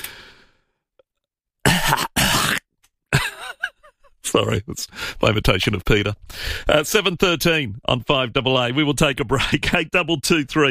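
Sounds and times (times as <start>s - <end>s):
person coughing into a phone: 1.7s - 3.4s
laughter: 3.2s - 4.6s
speech: 4.4s - 10.6s.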